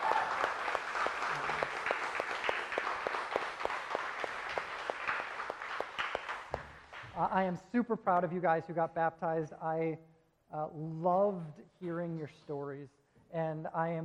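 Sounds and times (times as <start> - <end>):
audience applause: 0.0 - 7.2
speech: 7.2 - 14.0.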